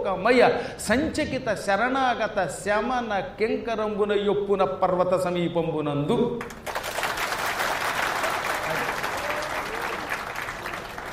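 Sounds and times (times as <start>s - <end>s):
speech: 0.0s - 6.7s
audience applause after a recited Telugu passage: 6.6s - 11.1s.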